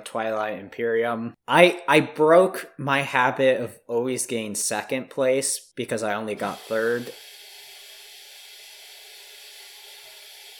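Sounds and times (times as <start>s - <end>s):
speech: 0.1s - 7.3s
refrigerator hissing as it leaks: 6.4s - 10.5s.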